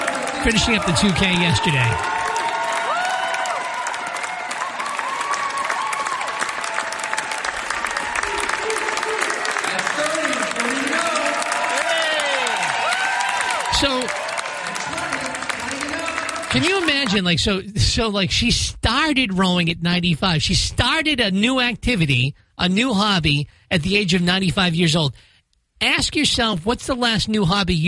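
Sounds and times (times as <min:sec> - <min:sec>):
crowd applauding: 0:00.0 - 0:17.4
speech: 0:00.4 - 0:02.2, 0:17.1 - 0:27.8.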